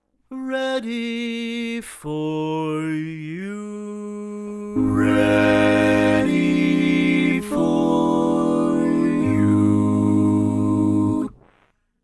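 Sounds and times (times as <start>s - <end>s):
barbershop tags lead voice: 0.3s - 11.4s.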